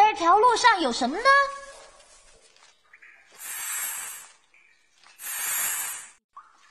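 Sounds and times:
speech: 0.2s - 1.6s
snake hissing: 3.3s - 4.4s, 5.1s - 6.2s.

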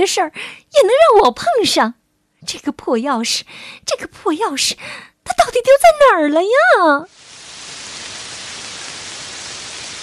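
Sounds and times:
speech: 0.0s - 7.4s
downpour of heavy rain: 7.1s - 10.0s.

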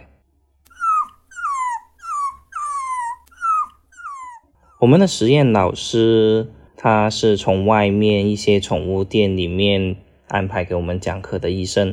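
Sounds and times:
dog whining: 0.7s - 5.1s
speech: 4.8s - 11.9s.

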